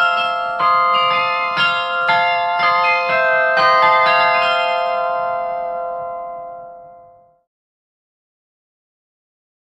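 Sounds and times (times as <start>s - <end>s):
clock chimes ringing: 0.0s - 7.3s.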